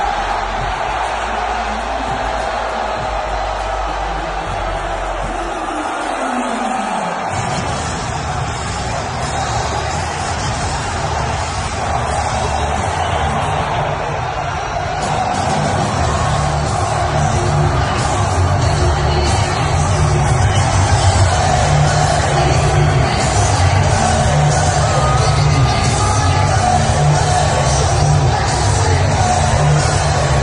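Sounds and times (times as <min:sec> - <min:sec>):
packed arena crowd cheering: 0:00.0 - 0:30.4.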